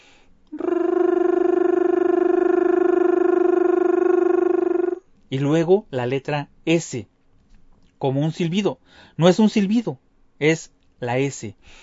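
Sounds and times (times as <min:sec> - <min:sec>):
high rolled R imitating toy cars: 0:00.5 - 0:05.0
speech: 0:05.3 - 0:07.1, 0:08.0 - 0:11.8.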